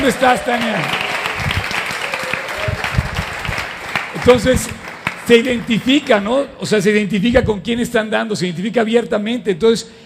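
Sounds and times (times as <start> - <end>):
speech: 0.0 - 1.0, 4.2 - 10.0
crowd applause: 0.0 - 6.3.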